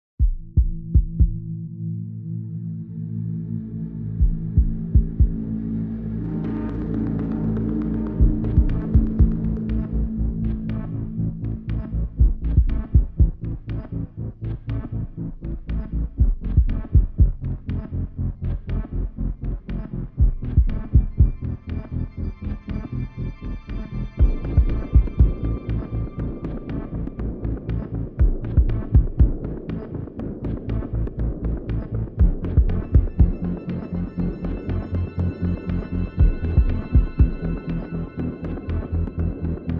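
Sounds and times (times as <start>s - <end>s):
bass: 0.0s - 39.7s
drums: 0.2s - 1.4s, 4.2s - 5.4s, 6.4s - 10.9s, 11.7s - 13.9s, 15.7s - 17.9s, 19.8s - 21.9s, 24.2s - 33.9s, 35.7s - 37.9s
pads: 1.5s - 39.7s.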